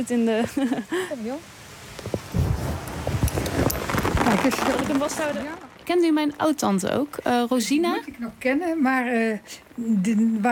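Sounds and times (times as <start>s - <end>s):
speech: 0.0s - 1.6s, 4.3s - 10.5s
heavy rain: 0.0s - 8.1s.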